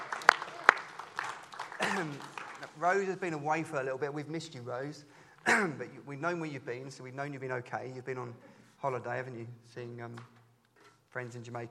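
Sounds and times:
audience clapping: 0.0 - 3.3
speech: 2.0 - 10.4, 11.1 - 11.6.

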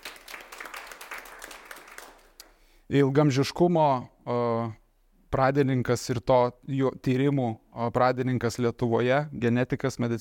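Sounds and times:
audience applause at a talk event: 0.0 - 2.4
speech: 2.9 - 10.1.

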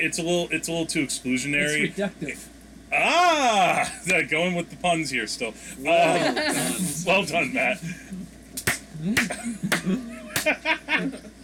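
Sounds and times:
speech: 0.0 - 8.1, 9.0 - 11.3
laughter: 5.8 - 8.3, 9.0 - 11.4
slow clap: 8.6 - 10.6.

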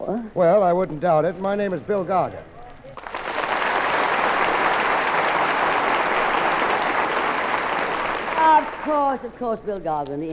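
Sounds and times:
speech: 0.0 - 2.6, 8.9 - 10.3
crowd applauding: 2.9 - 9.6.

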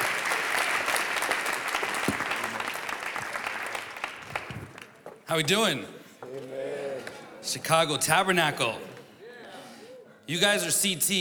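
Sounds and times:
church audience applause welcoming a pastor: 0.0 - 5.0
speech: 5.3 - 6.0, 7.4 - 8.9, 10.3 - 11.1.

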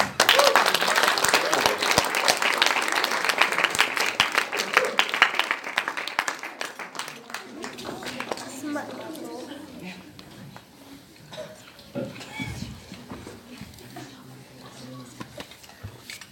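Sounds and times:
audience applause: 0.0 - 9.3.

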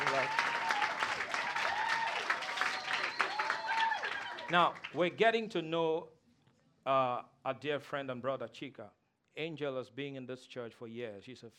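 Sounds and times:
audience clapping and applauding: 0.0 - 5.2
speech: 4.5 - 6.2, 6.8 - 11.5.

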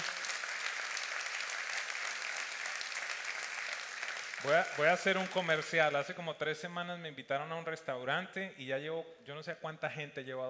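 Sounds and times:
audience clapping: 0.0 - 6.1
speech: 4.4 - 10.4.

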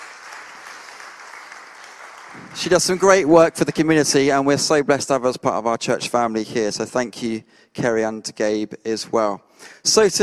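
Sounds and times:
audience applause: 0.0 - 4.3
speech: 2.4 - 10.2.

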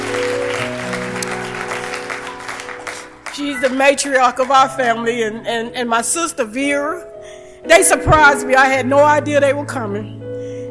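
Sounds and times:
audience hand clapping: 0.0 - 4.8
speech: 3.4 - 10.2.

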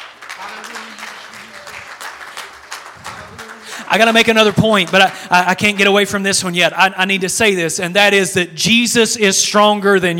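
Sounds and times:
audience clapping hands: 0.0 - 6.1
speech: 3.9 - 10.1.

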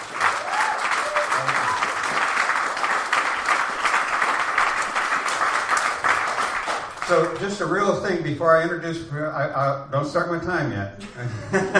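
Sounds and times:
audience applause at a San Diego salon event: 0.0 - 7.4
speech: 7.1 - 11.7
laughter: 11.0 - 11.7.

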